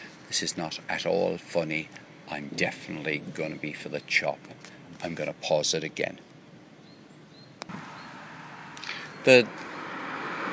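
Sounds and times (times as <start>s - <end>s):
speech: 0.3s - 6.3s, 9.2s - 9.7s
cars rushing by on the other side of the road: 7.6s - 10.5s.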